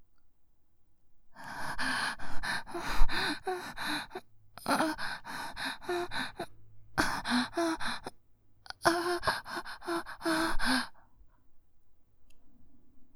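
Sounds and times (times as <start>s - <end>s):
person panting: 1.4s - 8.1s, 8.7s - 11.0s.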